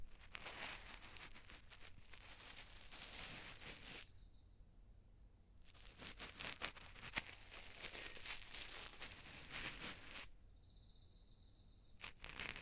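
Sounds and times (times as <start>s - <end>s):
cotton swab rubbing in left ear for ASMR: 0.0s - 4.1s, 5.7s - 10.3s, 12.0s - 12.6s.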